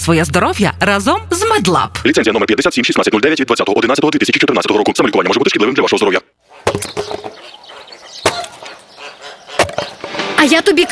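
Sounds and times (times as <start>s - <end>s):
speech: 0.0s - 7.0s, 10.4s - 10.9s
axe chopping firewood: 8.2s - 8.5s.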